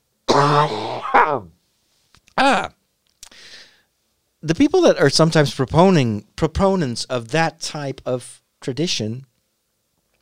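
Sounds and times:
person coughing fit: 0.3 - 1.5
speech: 0.4 - 1.6, 2.4 - 2.8, 4.4 - 9.3.

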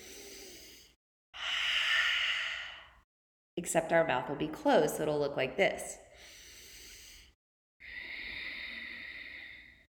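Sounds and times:
soft whispery breath for a yoga exercise: 0.0 - 3.1, 6.1 - 9.9
speech: 3.6 - 6.0.

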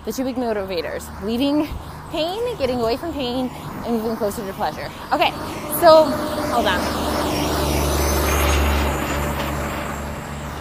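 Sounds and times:
speech: 0.0 - 7.2
loud truck: 2.5 - 10.5.

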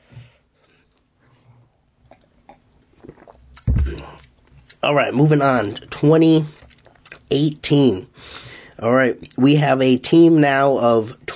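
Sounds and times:
person sipping coffee: 2.9 - 4.4
speech: 4.8 - 6.6, 7.3 - 11.2.

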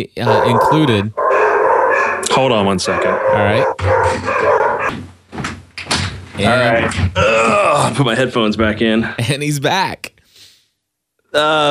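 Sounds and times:
speech: 0.0 - 1.2, 2.3 - 5.2, 6.4 - 10.2, 11.3 - 11.6
dog barking: 0.2 - 4.9.

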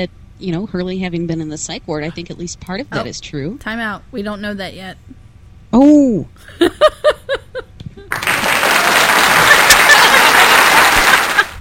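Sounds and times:
speech: 0.0 - 7.1
laughter: 6.4 - 11.6
applause sound effect: 8.1 - 11.6.

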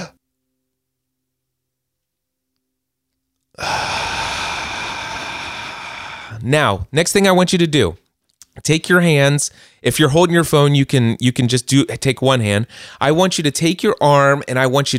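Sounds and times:
deep breath in: 3.6 - 6.4, 12.7 - 13.0
speech: 6.5 - 14.9.

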